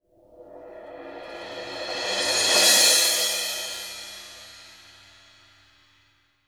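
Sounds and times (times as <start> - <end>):
crash cymbal struck with mallets: 1.2 - 5.4.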